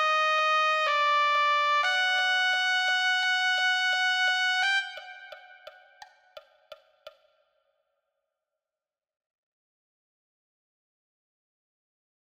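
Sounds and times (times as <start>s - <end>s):
trumpet: 0.0s - 5.7s.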